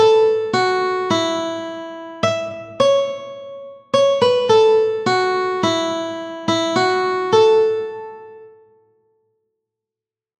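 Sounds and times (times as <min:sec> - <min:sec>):
mandolin melody: 0:00.0 - 0:08.4.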